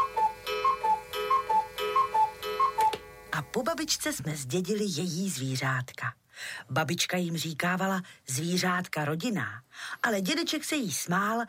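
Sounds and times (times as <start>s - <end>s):
cuckoo clock ticking: 0.0s - 3.1s
speech: 3.6s - 11.4s.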